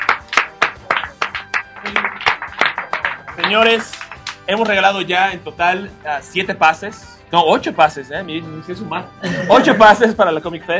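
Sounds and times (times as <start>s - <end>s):
audience applause: 0.0s - 4.7s
speech: 3.4s - 10.7s.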